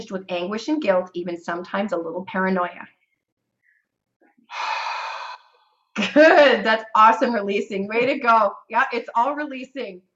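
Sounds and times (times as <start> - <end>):
speech: 0.0 - 3.0, 6.0 - 10.1
short breathy sounds: 3.5 - 5.9
deep breath in during a guided breathing exercise: 4.5 - 5.8.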